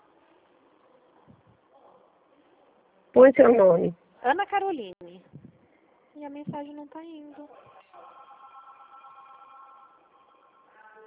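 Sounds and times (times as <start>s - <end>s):
speech: 3.2s - 5.0s, 6.2s - 7.7s
mobile phone ringing: 8.0s - 11.0s.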